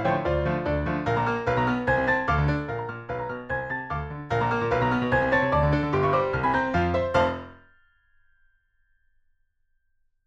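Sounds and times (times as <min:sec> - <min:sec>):
fast piano duet secondo and primo: 0:00.0 - 0:07.6.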